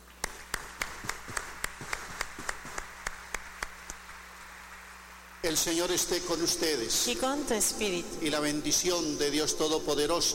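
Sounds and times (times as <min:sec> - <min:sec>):
audience applause: 0:00.0 - 0:05.4
speech: 0:05.4 - 0:10.3.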